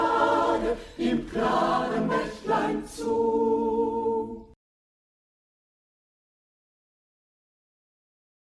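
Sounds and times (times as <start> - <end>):
choir singing: 0.0 - 4.6.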